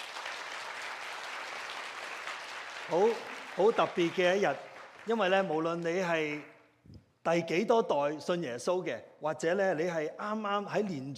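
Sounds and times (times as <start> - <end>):
congregation applause at a church service: 0.0 - 6.4
speech: 2.9 - 11.1.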